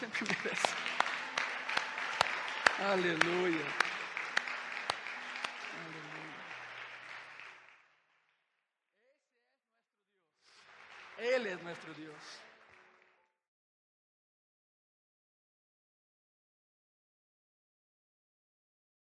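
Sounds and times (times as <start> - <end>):
speech: 0.0 - 0.9, 2.8 - 3.8, 11.6 - 12.5
laughter: 0.0 - 1.8
audience applause: 0.0 - 8.2, 10.5 - 13.3.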